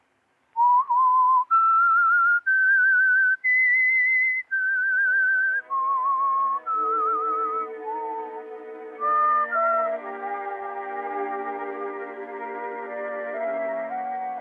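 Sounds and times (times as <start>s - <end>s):
whistled theme melody: 0.6s - 14.3s
faint accompanying tones: 4.6s - 14.3s.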